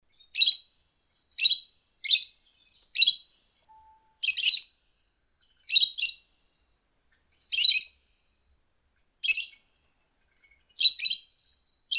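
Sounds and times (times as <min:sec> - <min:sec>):
lovebird calls: 0:01.3 - 0:04.7, 0:05.4 - 0:06.2, 0:07.3 - 0:08.1, 0:09.2 - 0:11.3.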